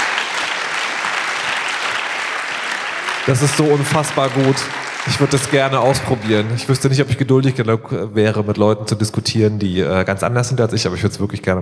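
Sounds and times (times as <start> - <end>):
audience applause: 0.0 - 7.2
speech: 3.2 - 11.6.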